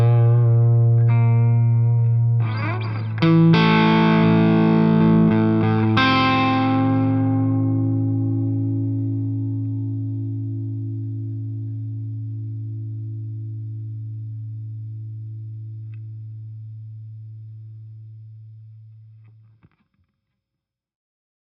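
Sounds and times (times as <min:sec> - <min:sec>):
solid body electric guitars: 0:00.0 - 0:17.1.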